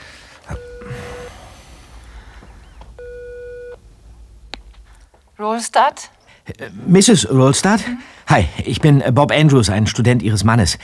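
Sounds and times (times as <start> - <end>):
faint hiss: 0.0 - 8.3
telephone ringback tone on speakerphone: 0.5 - 1.7, 2.6 - 3.8
speech: 5.4 - 10.8.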